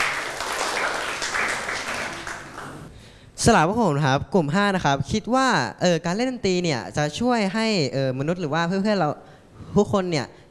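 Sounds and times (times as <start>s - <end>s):
applause for a group: 0.0s - 2.9s
speech: 3.4s - 10.4s.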